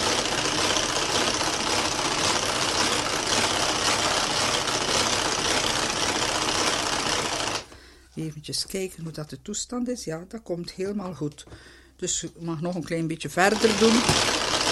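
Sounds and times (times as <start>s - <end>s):
hand-cranked rotary beater whipping a mixture: 0.0s - 7.7s, 13.5s - 14.6s
speech: 8.4s - 14.5s.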